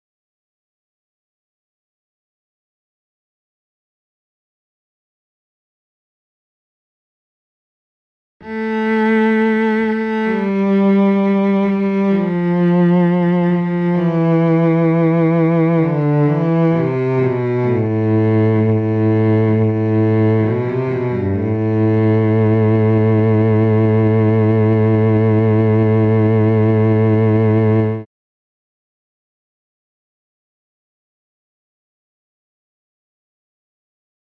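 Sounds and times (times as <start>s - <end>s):
cello: 8.4s - 28.1s.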